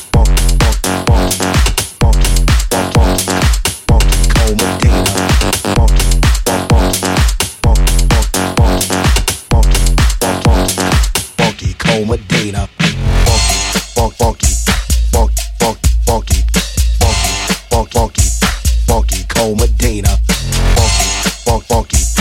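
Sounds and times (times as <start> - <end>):
funk bass house remix music: 0.0 - 22.2.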